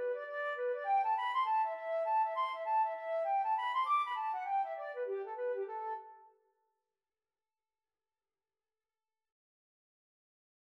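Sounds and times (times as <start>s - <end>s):
flute playing a reel: 0.0s - 6.2s.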